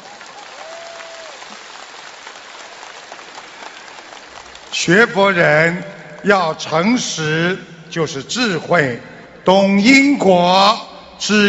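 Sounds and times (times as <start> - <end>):
audience applause: 0.0 - 5.0
speech: 4.8 - 11.4.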